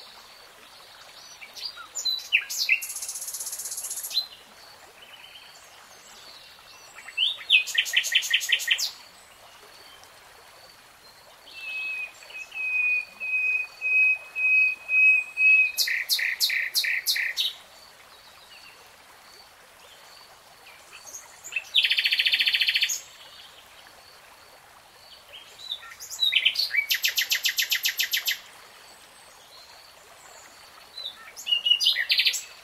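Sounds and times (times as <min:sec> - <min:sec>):
faint steady background hiss: 0:00.0 - 0:32.6
nightingale song: 0:01.2 - 0:04.4, 0:06.8 - 0:09.0, 0:11.4 - 0:17.6, 0:20.6 - 0:23.6, 0:25.3 - 0:28.5, 0:30.4 - 0:32.6.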